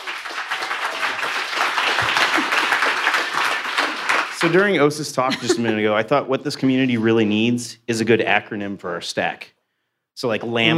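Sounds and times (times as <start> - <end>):
audience applause: 0.0 - 5.7
laughter: 2.0 - 3.0, 4.4 - 7.1
speech: 4.4 - 9.6, 10.2 - 10.7.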